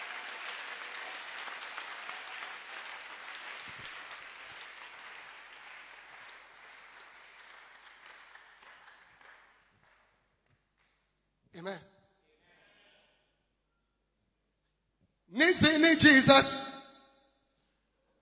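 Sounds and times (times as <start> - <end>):
audience clapping hands: 0.0 - 11.0
speech: 11.6 - 11.9, 15.6 - 16.6.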